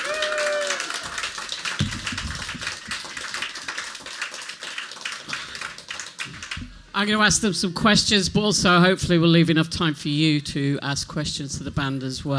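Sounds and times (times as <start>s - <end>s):
audience applause: 0.0s - 6.8s
speech: 7.0s - 12.3s.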